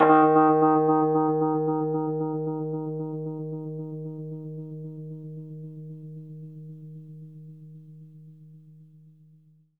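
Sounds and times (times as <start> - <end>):
fast Rhodes electric piano in D sharp: 0.0 - 6.8.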